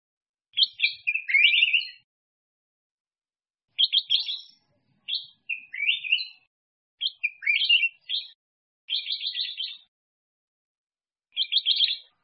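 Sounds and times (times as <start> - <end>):
black-crested bulbul singing: 0.5 - 2.1, 3.7 - 9.9, 11.3 - 12.2.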